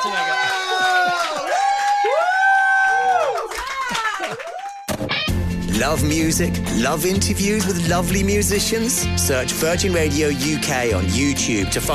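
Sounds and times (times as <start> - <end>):
audience applause: 0.0 - 5.0
speech: 5.8 - 11.9.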